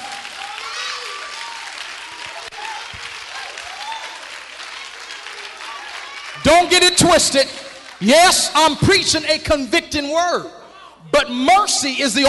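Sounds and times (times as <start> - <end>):
people clapping: 0.0 - 9.4
speech: 6.5 - 12.2.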